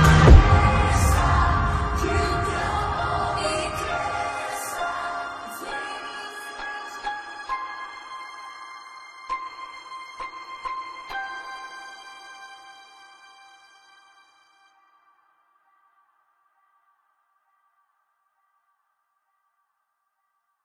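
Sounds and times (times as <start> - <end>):
electronic gospel remix: 0.0 - 8.5.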